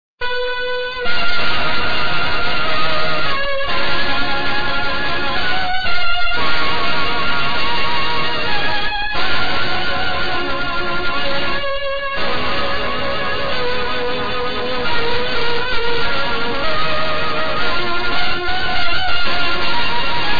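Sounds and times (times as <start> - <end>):
organ: 0.3 - 20.3.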